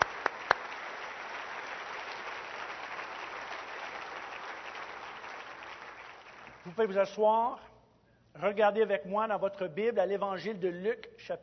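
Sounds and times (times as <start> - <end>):
audience applause: 0.0 - 6.7
speech: 6.6 - 7.7, 8.4 - 11.4.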